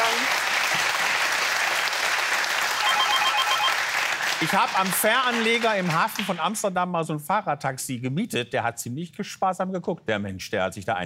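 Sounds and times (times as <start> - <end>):
applause: 0.0 - 6.5
speech: 4.4 - 11.0.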